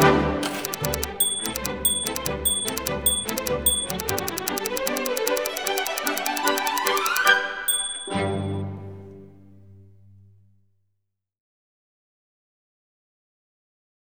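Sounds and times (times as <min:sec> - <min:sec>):
typewriter: 0:00.0 - 0:08.2.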